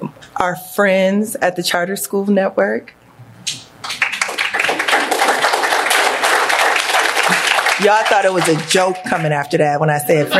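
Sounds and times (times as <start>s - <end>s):
speech: 0.4s - 3.0s, 7.8s - 10.3s
audience clapping: 3.5s - 9.3s.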